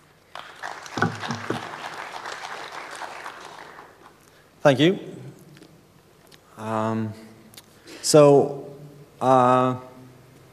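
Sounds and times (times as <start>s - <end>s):
audience clapping: 0.2s - 4.3s
speech: 4.6s - 5.1s, 6.7s - 7.2s, 8.1s - 8.6s, 9.2s - 9.9s.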